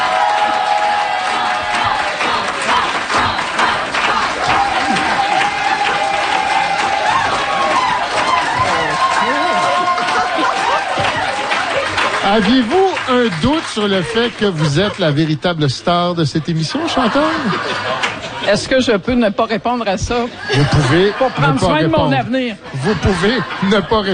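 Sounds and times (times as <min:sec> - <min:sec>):
audience applause: 0:00.0 - 0:15.4
laughter: 0:02.7 - 0:18.8, 0:20.3 - 0:24.1
speech: 0:12.3 - 0:24.1.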